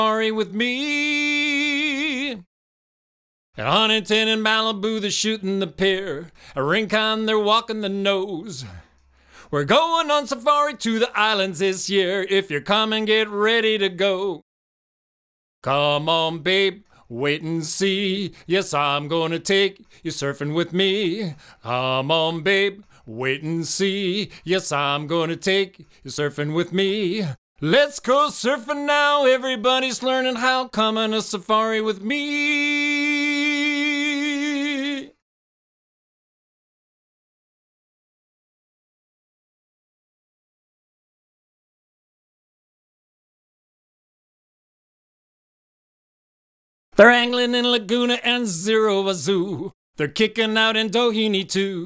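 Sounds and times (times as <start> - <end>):
vocals: 0.0 - 2.5, 3.6 - 14.5, 15.6 - 35.2, 46.9 - 51.8.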